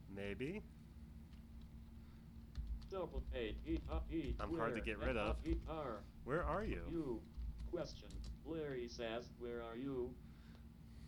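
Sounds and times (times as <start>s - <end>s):
speech: 0.2s - 0.8s, 2.9s - 10.3s
typing on a computer keyboard during an online chat: 2.5s - 8.4s.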